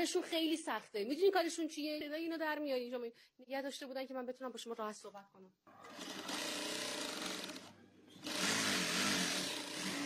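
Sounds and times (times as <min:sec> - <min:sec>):
speech: 0:00.0 - 0:06.2
sewing machine running: 0:05.7 - 0:10.0.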